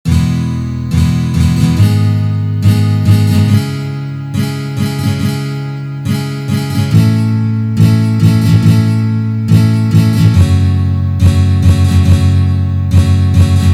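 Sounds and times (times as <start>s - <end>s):
guitar strumming: 0.1s - 13.7s.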